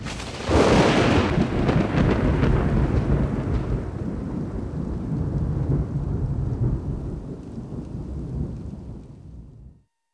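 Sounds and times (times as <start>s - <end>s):
ambient thunder: 0.0s - 9.8s.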